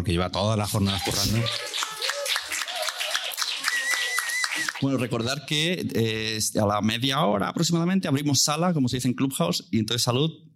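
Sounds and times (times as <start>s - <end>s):
speech: 0.0s - 1.8s, 4.8s - 10.5s
audience applause: 0.7s - 5.4s.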